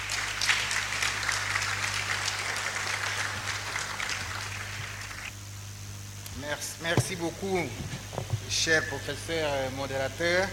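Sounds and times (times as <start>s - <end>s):
audience applause: 0.0s - 5.3s
speech: 6.5s - 10.5s.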